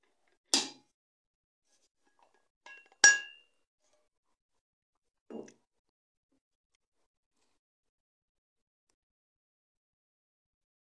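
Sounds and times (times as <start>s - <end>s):
glass clinking while someone drinks water: 2.7s - 3.5s.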